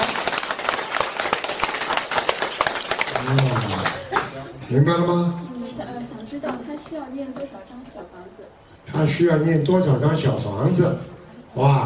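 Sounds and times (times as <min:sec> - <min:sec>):
audience clapping: 0:00.0 - 0:04.6
speech: 0:03.2 - 0:11.8.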